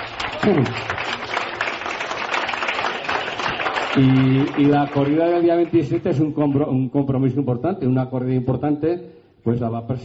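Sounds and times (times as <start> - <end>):
crowd clapping: 0.0 - 6.7
speech: 0.4 - 1.2, 4.0 - 10.0.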